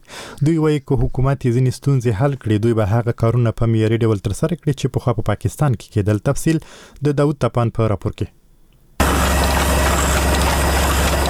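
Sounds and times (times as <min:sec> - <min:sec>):
speech: 0:00.4 - 0:08.4
printing press machine running while printing pages for a small book: 0:09.0 - 0:11.2.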